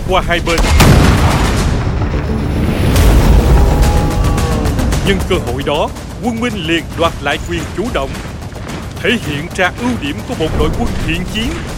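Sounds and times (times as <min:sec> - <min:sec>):
speech: 0:00.1 - 0:01.4, 0:05.0 - 0:08.3, 0:09.0 - 0:11.7
cannon blast explosion: 0:00.4 - 0:03.9.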